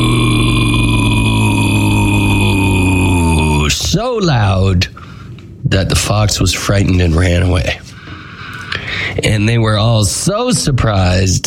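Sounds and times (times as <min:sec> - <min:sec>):
voice imitating a loud cow moo: 0:00.0 - 0:03.8
speech: 0:04.2 - 0:05.0, 0:05.7 - 0:07.8, 0:09.2 - 0:11.4.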